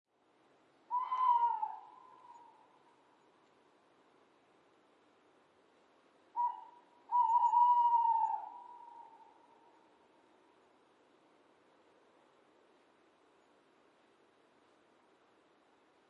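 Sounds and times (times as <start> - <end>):
owl hooting: 0.9 - 2.8, 6.3 - 9.7.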